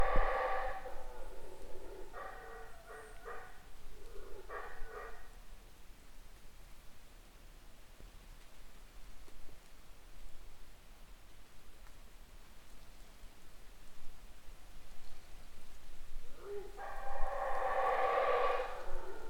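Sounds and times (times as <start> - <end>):
howler monkey roaring and grunting: 0.0 - 5.2, 16.3 - 19.2.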